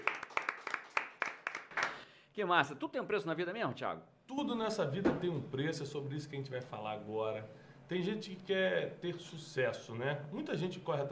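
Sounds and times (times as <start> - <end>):
round of applause: 0.0 - 2.1
speech: 2.4 - 11.1.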